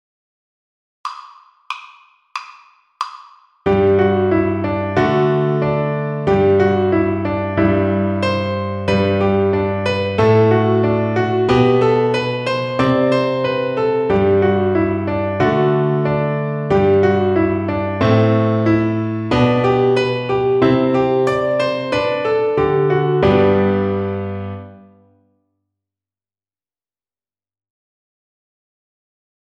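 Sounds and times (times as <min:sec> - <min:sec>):
piano accompaniment: 0:03.7 - 0:25.2.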